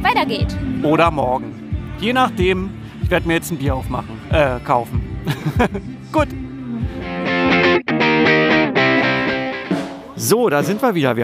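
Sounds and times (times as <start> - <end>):
speech: 0.0 - 7.0, 10.2 - 11.2
laughter: 5.2 - 6.0
loud live band playing heavily distorted rock at festival: 6.9 - 10.2.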